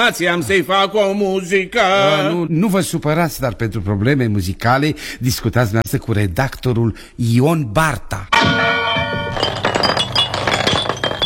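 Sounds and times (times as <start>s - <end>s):
speech: 0.0s - 8.6s
entrance window glass breaking: 8.4s - 11.2s.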